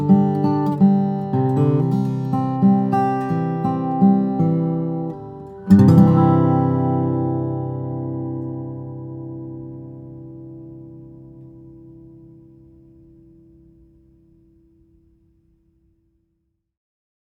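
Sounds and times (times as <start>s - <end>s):
Grand Concert flattop steel-string acoustic guitar of East Indian rosewood and cedar: 0.0s - 15.2s.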